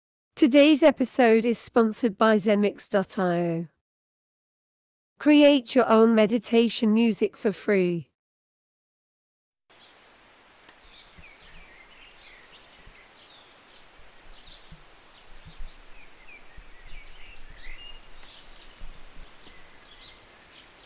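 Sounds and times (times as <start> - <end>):
speech: 0.4 - 3.7, 5.2 - 8.1
rain hiss: 9.7 - 20.8
birds chirping: 10.7 - 20.8.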